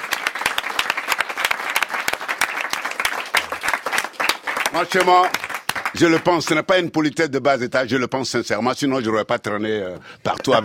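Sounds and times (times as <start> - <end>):
audience applause: 0.0 - 6.5
speech: 4.7 - 10.6.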